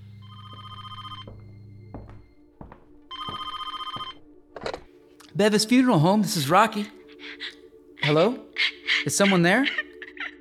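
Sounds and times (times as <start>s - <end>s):
telephone bell ringing: 0.2s - 1.3s, 3.1s - 4.2s
speech: 5.4s - 8.4s, 9.0s - 9.8s.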